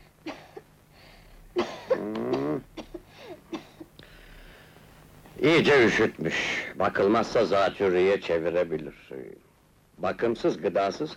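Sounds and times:
child coughing while ill with a bad chill: 1.6 - 3.9
speech: 5.4 - 9.4, 10.0 - 11.1.

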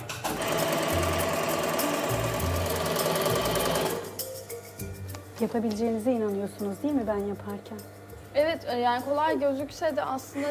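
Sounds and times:
overlock sewing machine stitching a knitted sweater: 0.2 - 4.2
speech: 5.4 - 10.5.

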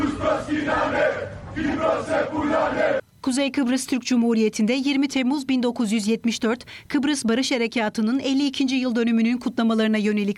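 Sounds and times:
Greek Cypriot protesters chanting slogans against Turkey: 0.0 - 3.0
speech: 1.6 - 10.3.

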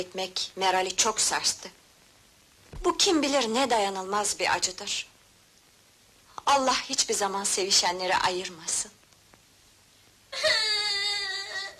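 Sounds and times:
speech: 0.0 - 1.8, 2.8 - 5.1, 6.5 - 9.0
young child crying: 10.3 - 11.7.

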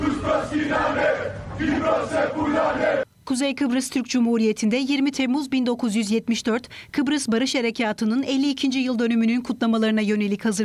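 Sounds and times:
Greek Cypriot protesters chanting anti-Turkish slogans at a demonstration: 0.0 - 3.1
speech: 0.5 - 10.6.

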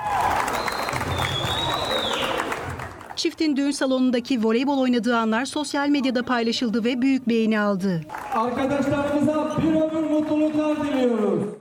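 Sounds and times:
wedding guests applauding: 0.0 - 3.2, 8.1 - 11.6
speech: 3.2 - 11.6.

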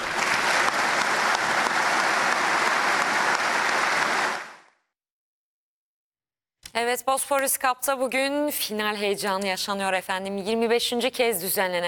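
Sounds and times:
audience applause in a hall: 0.0 - 4.8
speech: 6.8 - 11.8.

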